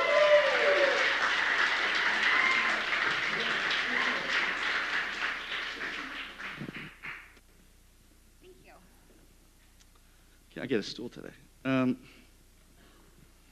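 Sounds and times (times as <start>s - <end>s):
audience applause: 0.0s - 7.4s
speech: 10.6s - 12.2s.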